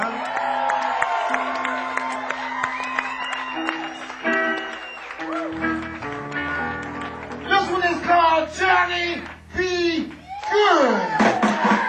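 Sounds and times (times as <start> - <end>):
whoops: 0.0 - 5.6, 10.2 - 11.8
crowd clapping and cheering: 0.0 - 11.8.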